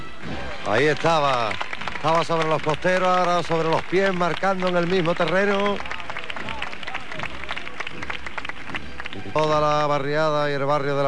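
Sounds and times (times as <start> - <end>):
warm crowd applause: 0.2 - 10.2
speech: 0.7 - 5.9, 9.3 - 11.0
murmuring voices: 5.5 - 9.5.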